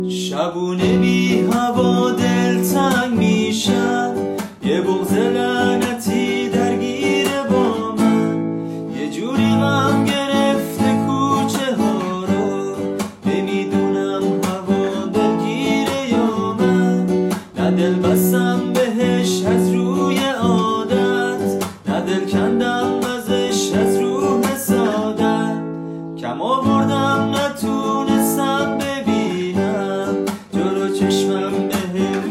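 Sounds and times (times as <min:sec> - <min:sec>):
guitar: 0:00.0 - 0:32.3.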